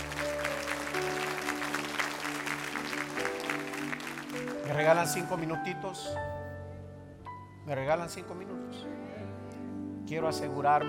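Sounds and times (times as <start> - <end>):
crowd clapping: 0.0 - 5.7
speech: 4.7 - 6.4, 7.7 - 9.0, 10.1 - 10.8.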